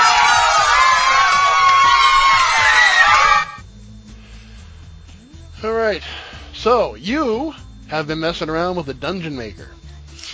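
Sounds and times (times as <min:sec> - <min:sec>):
crowd cheering yay after a game ends: 0:00.0 - 0:03.6
speech: 0:05.9 - 0:09.8.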